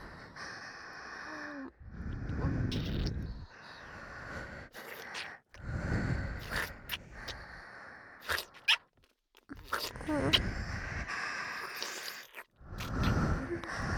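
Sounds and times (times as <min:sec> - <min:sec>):
breathing in both ears: 0:00.0 - 0:08.3, 0:10.4 - 0:13.9
wet sucking sounds: 0:02.6 - 0:03.3, 0:04.6 - 0:07.4, 0:08.2 - 0:13.9.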